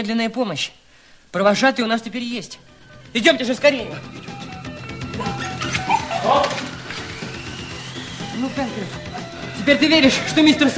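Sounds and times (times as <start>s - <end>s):
speech: 0.0s - 4.3s, 8.4s - 9.0s, 9.6s - 10.7s
steady noisy background: 1.4s - 10.7s
dog Top from The Mysterious Island barking: 5.2s - 6.6s.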